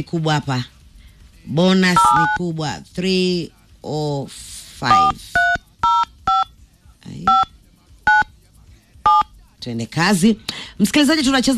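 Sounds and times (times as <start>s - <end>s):
speech: 0.0s - 0.8s, 1.4s - 5.4s, 9.6s - 11.5s
telephone keypad dual-tone beeps dialing a star code: 2.0s - 2.4s, 4.9s - 6.5s, 7.3s - 7.5s, 9.1s - 9.3s.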